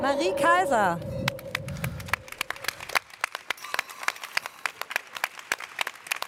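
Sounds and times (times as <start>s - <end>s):
speech: 0.2s - 1.1s
audience applause: 1.3s - 6.2s.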